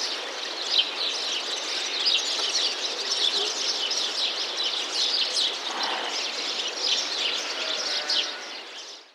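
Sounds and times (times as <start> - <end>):
birds: 0.0 - 9.1.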